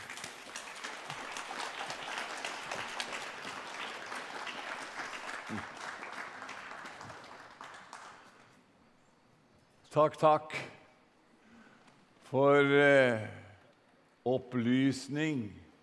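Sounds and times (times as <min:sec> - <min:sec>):
audience applause: 0:00.0 - 0:08.6
speech: 0:05.5 - 0:05.7, 0:10.0 - 0:10.7, 0:12.3 - 0:13.4, 0:14.3 - 0:15.6.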